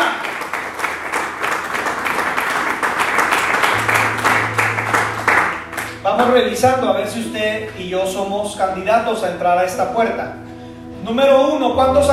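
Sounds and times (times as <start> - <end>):
crowd audience applauding loudly: 0.0 - 6.0
speech: 6.2 - 10.4, 11.0 - 12.1.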